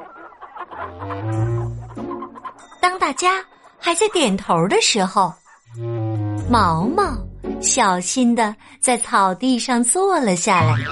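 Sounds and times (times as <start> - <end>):
hens clucking: 0.0 - 5.6
speech: 0.9 - 1.6, 3.1 - 5.9, 6.5 - 10.8.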